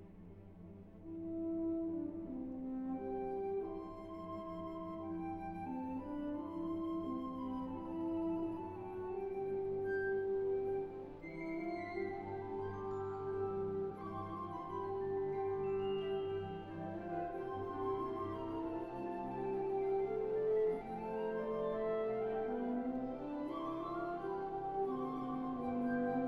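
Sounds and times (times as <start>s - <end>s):
suite for orchestra: 0.0s - 26.2s.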